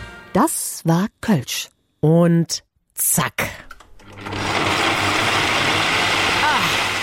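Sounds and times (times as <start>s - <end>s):
speech: 0.4s - 3.6s
electric blender running: 4.0s - 7.0s.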